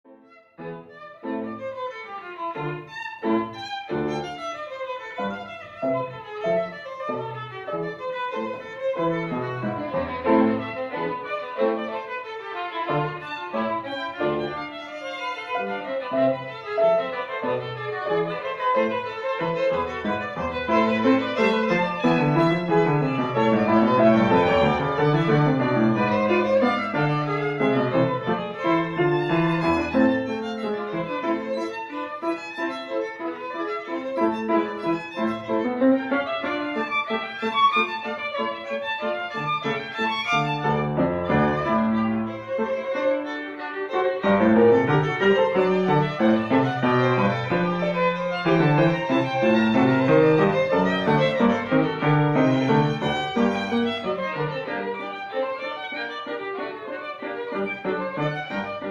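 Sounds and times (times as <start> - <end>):
duet piece: 0.4 - 58.8.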